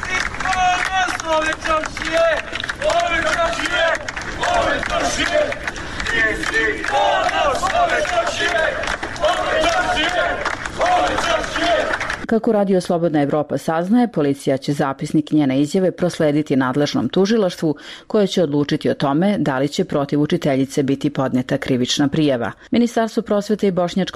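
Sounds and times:
townspeople shouting and cheering outside a police station: 0.0 - 12.2
speech: 1.3 - 5.6, 6.2 - 24.1.

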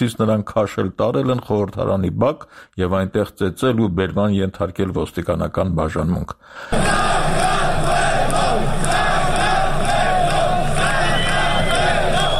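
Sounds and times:
speech: 0.0 - 7.4
crowd massed shouting: 6.7 - 12.3
protesters chanting in front of parliament: 6.7 - 12.3.

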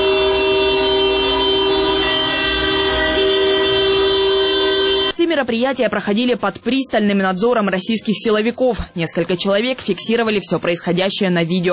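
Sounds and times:
car horns honking in unison: 0.0 - 5.4
speech: 5.5 - 11.7.

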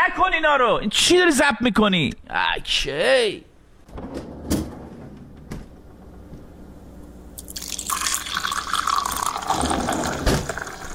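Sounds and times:
speech: 0.2 - 4.3
water pouring into a glass: 7.4 - 10.9.

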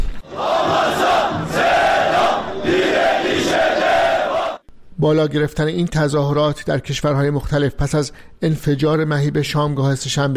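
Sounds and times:
anti-Israel protest crowd chanting: 0.2 - 4.6
speech: 5.0 - 10.3.

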